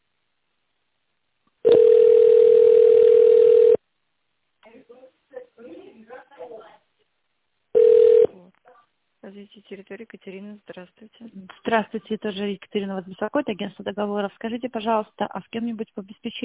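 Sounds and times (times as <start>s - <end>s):
telephone ringback tone while call connects: 1.6s - 3.8s, 7.8s - 8.3s
speech: 9.7s - 16.4s.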